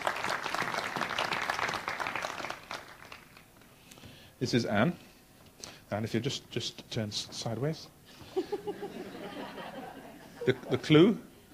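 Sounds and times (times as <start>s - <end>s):
applause: 0.0s - 3.6s
speech: 4.4s - 5.1s, 5.9s - 8.0s, 10.4s - 11.3s
laughter: 8.2s - 11.1s.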